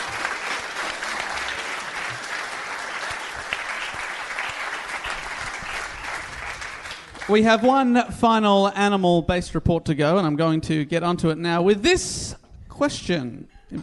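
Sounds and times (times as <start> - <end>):
audience applause: 0.0 - 7.7
speech: 7.3 - 13.8.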